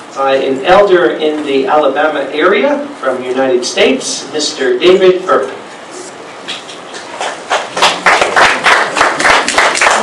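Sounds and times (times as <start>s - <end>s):
speech: 0.2s - 5.6s
audience clapping: 7.0s - 10.0s.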